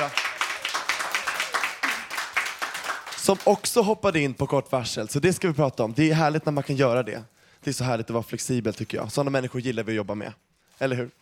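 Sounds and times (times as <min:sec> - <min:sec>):
few hands clapping: 0:00.0 - 0:03.6
speech: 0:03.2 - 0:11.2.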